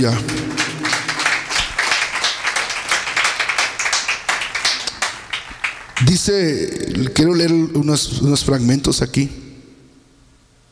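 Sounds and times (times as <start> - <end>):
speech: 0.0 - 0.4, 6.0 - 9.4
low hum: 0.0 - 1.9
audience clapping hands: 0.0 - 6.3.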